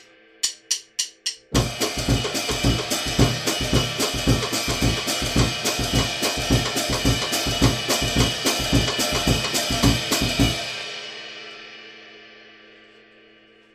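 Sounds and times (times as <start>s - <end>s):
samba music: 1.5s - 10.7s.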